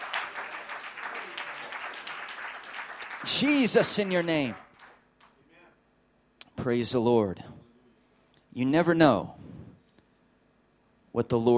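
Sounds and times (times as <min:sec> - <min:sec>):
audience clapping hands: 0:00.0 - 0:05.4
speech: 0:03.2 - 0:04.6, 0:06.6 - 0:07.5, 0:08.6 - 0:09.4, 0:11.1 - 0:11.5.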